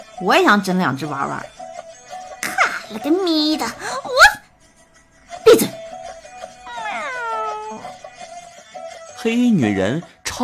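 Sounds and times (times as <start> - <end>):
speech: 0.2 - 1.6, 2.9 - 4.4, 5.5 - 5.8, 9.2 - 10.4
cat meowing: 6.6 - 8.0.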